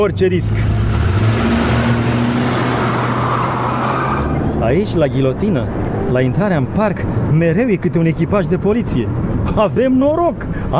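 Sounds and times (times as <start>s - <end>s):
speech: 0.0s - 0.9s, 4.6s - 10.7s
limousine engine droning while driving off: 0.0s - 7.3s
road noise: 0.0s - 10.7s.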